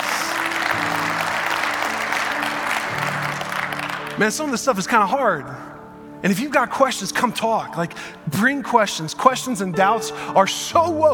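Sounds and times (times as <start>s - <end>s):
live audience clapping: 0.0s - 4.8s
speech: 4.2s - 11.1s.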